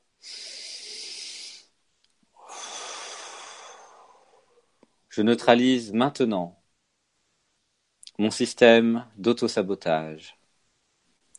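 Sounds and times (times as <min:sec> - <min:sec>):
deep breath: 0:00.2 - 0:04.8
speech: 0:05.2 - 0:06.6, 0:08.2 - 0:10.4.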